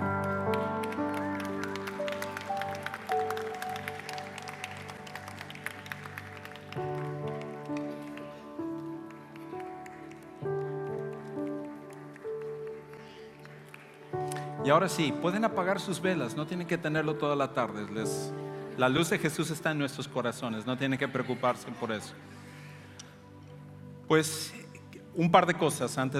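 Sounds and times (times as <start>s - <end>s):
group clapping: 0.0s - 15.7s
speech: 14.6s - 22.3s, 24.1s - 24.6s, 25.2s - 26.1s.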